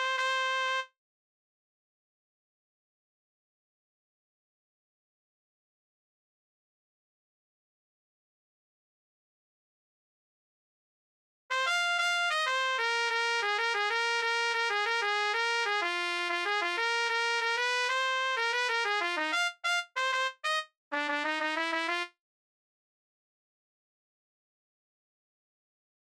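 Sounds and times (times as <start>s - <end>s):
trumpet: 0.0s - 0.9s, 11.5s - 22.2s.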